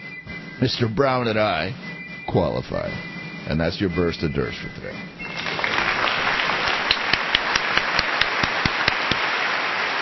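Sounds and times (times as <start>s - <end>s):
speech: 0.6s - 5.1s
crowd applause: 5.3s - 10.0s
sharp louder claps: 5.3s - 10.0s.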